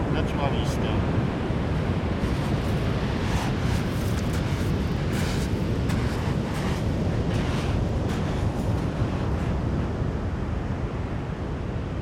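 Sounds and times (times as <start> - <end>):
Atlantic rollers crashing on ochre shell sand at Plage d'Ondes near Bayonne: 0.0 - 11.9.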